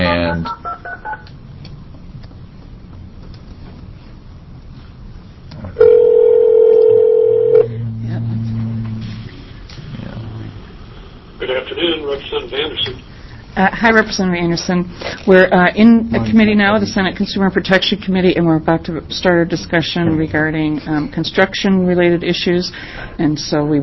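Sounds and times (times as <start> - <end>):
speech: 0.4 - 0.6, 11.8 - 23.8
telephone dial tone on a phone line: 5.8 - 7.7
low buzzing tones: 5.8 - 10.8.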